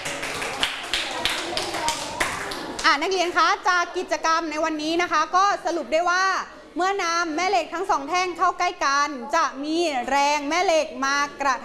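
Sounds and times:
students clapping rhythmically in a classroom: 0.0s - 3.1s
speech: 2.9s - 11.6s.

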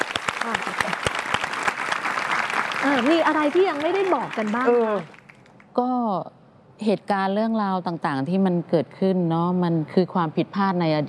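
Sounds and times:
audience applause: 0.0s - 5.4s
speech: 0.4s - 1.1s, 2.8s - 5.2s, 5.8s - 11.0s.

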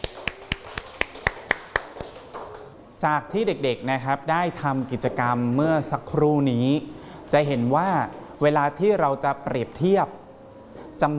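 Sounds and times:
children in a classroom clapping for a classmate: 0.0s - 2.8s
speech: 3.0s - 10.2s, 11.0s - 11.1s.

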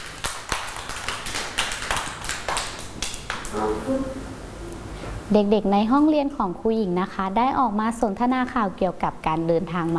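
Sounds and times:
children clapping hands: 0.0s - 3.6s
speech: 3.5s - 4.4s, 5.3s - 9.9s.

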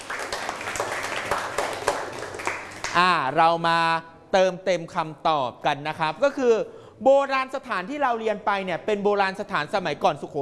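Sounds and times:
class of children applauding: 0.0s - 3.0s
speech: 2.9s - 10.4s.

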